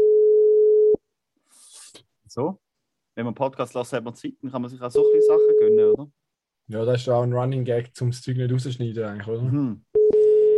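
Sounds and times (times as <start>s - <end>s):
phone line beep while call rings: 0.0s - 1.0s, 10.0s - 10.5s
speech: 2.4s - 9.9s.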